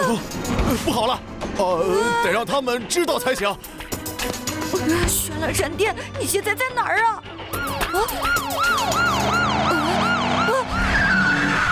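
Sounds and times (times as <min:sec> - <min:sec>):
speech: 0:00.1 - 0:07.3, 0:07.9 - 0:08.7
siren wailing: 0:07.5 - 0:11.7
vehicle engine: 0:08.1 - 0:11.7.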